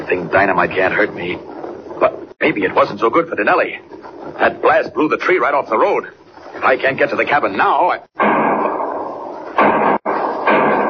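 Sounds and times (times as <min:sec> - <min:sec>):
steady dense noise: 0:00.0 - 0:10.8
speech: 0:00.3 - 0:08.1
gunshots in a radio drama: 0:08.2 - 0:10.8.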